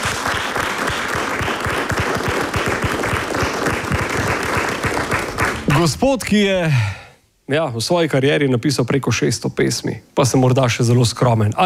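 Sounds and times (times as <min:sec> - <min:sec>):
audience applause: 0:00.0 - 0:05.9
speech: 0:05.8 - 0:11.6.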